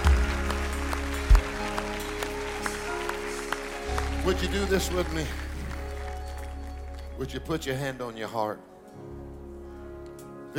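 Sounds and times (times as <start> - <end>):
audience clapping: 0.0 - 8.4
speech: 4.2 - 5.4, 7.2 - 9.2.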